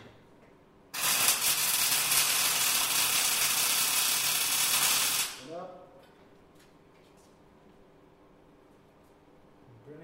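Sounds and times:
industrial welding: 0.9 - 5.7.

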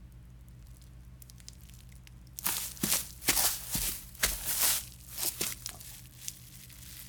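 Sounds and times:
rustling foliage in forest: 2.4 - 7.0.

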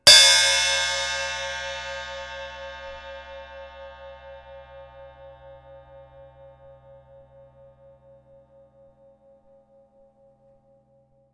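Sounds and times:
cymbal hard hit: 0.0 - 7.2.

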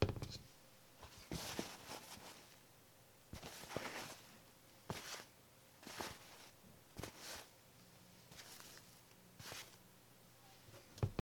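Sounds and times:
cloth rustling: 1.0 - 2.6, 3.4 - 4.3, 4.9 - 7.5, 8.3 - 9.8.

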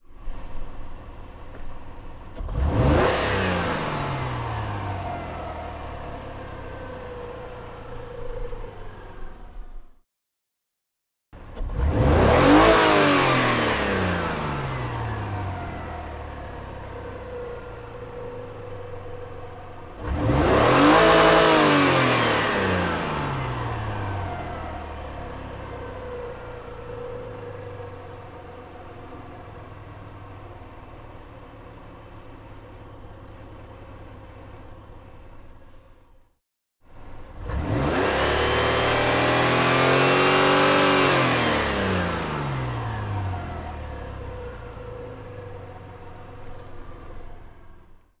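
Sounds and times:
engine accelerating: 0.1 - 10.0, 11.4 - 36.2, 36.9 - 48.1.

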